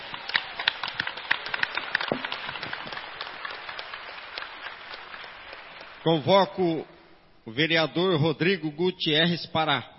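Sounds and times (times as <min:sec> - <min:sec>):
audience applause: 0:00.0 - 0:06.3
speech: 0:06.0 - 0:09.9.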